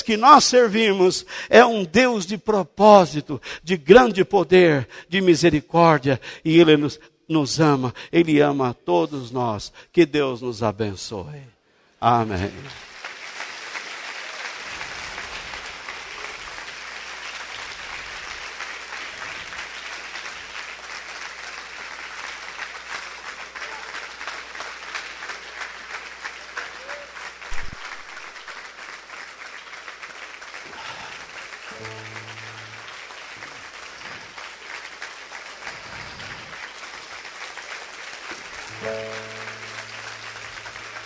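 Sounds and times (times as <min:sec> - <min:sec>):
speech: 0:00.1 - 0:12.9
audience applauding: 0:12.4 - 0:41.0
faint tonal musical notes: 0:31.7 - 0:33.3, 0:38.7 - 0:41.0.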